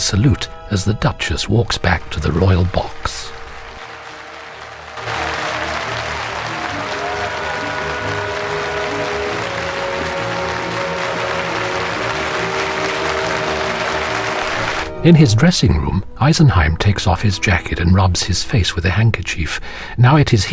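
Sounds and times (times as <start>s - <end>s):
speech: 0.0s - 3.3s, 15.0s - 20.5s
sustained music: 0.0s - 19.0s
theatre audience standing and applauding: 1.5s - 15.0s.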